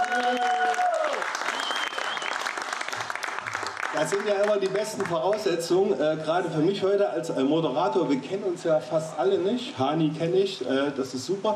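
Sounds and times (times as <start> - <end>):
audience applause: 0.0 - 5.6
speech: 4.0 - 11.5.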